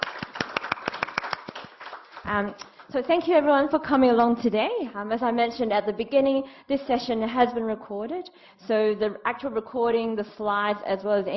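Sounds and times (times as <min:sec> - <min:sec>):
scattered clapping closing a recorded mentoring session: 0:00.0 - 0:02.9
speech: 0:02.3 - 0:11.3.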